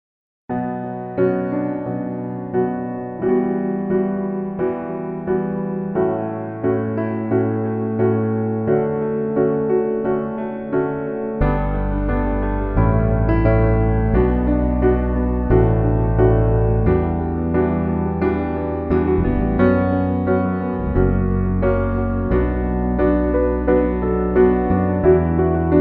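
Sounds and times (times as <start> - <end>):
piano: 0.5 - 25.8.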